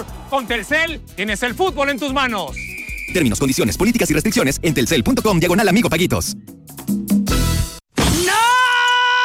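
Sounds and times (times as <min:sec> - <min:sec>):
speech: 0:00.0 - 0:06.5
phone screen shattering: 0:07.9 - 0:09.1.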